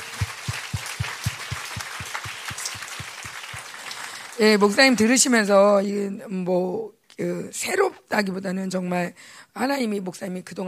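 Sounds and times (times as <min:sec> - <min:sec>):
audience applause: 0:00.0 - 0:04.9
speech: 0:04.4 - 0:10.6.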